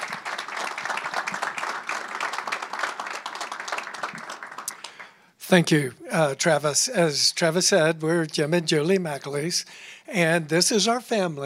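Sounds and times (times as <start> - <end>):
audience applause: 0.0 - 5.1
speech: 5.5 - 11.4.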